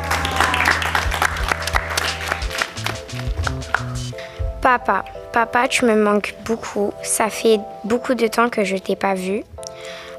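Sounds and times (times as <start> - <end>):
audience applause: 0.0 - 4.1
speech: 4.7 - 9.6.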